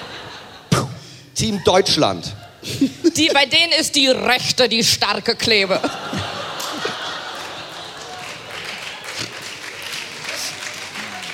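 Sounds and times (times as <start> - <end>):
laughter: 0.0 - 3.5, 5.6 - 11.3
speech: 1.4 - 6.3
audience clapping: 6.3 - 11.3.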